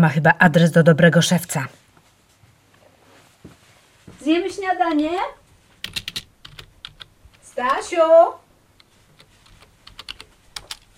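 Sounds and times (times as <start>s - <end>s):
speech: 0.0s - 1.8s, 4.2s - 6.2s, 7.6s - 8.4s
keyboard typing while writing down the day's events: 5.2s - 8.0s, 8.8s - 10.9s.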